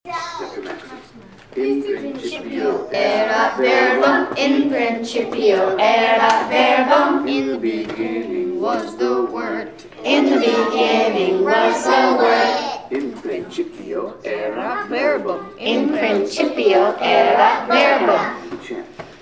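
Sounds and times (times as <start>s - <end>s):
fourth grade children chanting in Latin: 1.7s - 12.9s, 14.5s - 18.5s.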